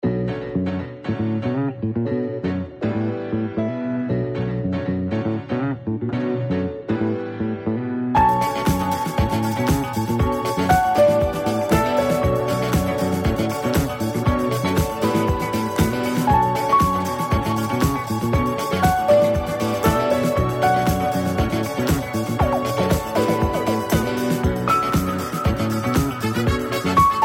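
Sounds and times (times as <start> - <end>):
funk disco music: 0.2 - 27.2.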